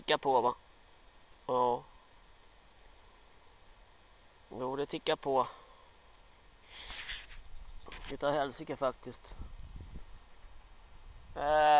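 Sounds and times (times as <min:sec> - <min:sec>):
speech: 0:00.1 - 0:00.6, 0:01.5 - 0:01.9, 0:04.5 - 0:05.6, 0:08.1 - 0:09.4, 0:11.4 - 0:11.7
bird chirping: 0:01.6 - 0:03.7, 0:07.2 - 0:11.4.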